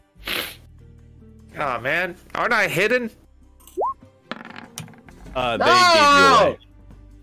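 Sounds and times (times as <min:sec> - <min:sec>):
speech: 0:01.6 - 0:03.2, 0:05.3 - 0:06.6
dice clattering across a surface: 0:04.3 - 0:05.2.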